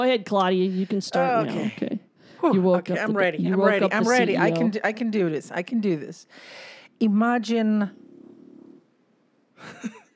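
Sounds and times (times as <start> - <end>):
speech: 0.0 - 8.0, 9.6 - 10.0
loud snoring: 7.9 - 8.9.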